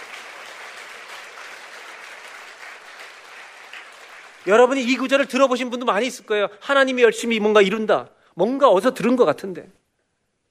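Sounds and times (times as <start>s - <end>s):
audience applause: 0.0s - 4.9s
speech: 4.4s - 9.8s.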